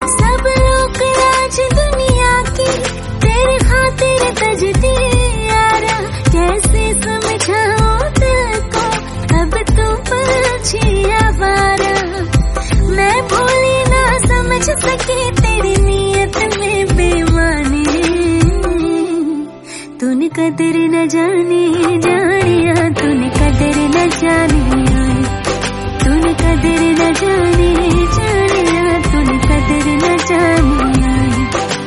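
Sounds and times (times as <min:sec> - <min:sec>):
Hindi song: 0:00.0 - 0:31.8.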